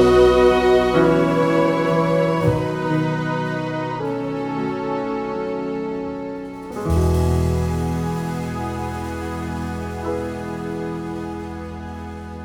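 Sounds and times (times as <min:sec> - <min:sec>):
wedding version of a song: 0:00.0 - 0:12.4.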